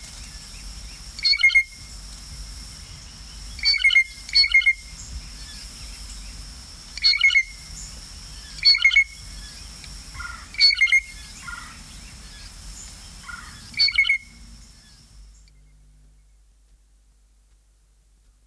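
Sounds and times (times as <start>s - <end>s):
songbirds: 0.0s - 16.8s
blue jay: 1.2s - 1.8s, 3.5s - 6.4s, 7.0s - 15.6s.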